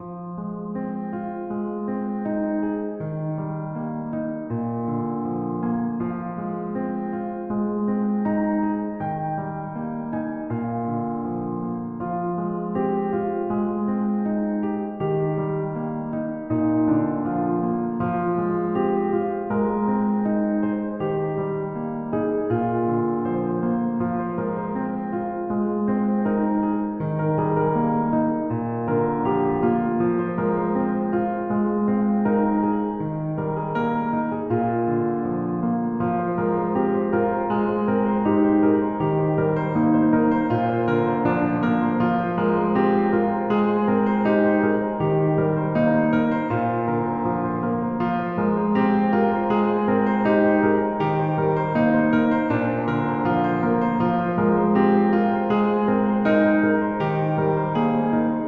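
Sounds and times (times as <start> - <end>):
piano improvisation: 0.0 - 58.4.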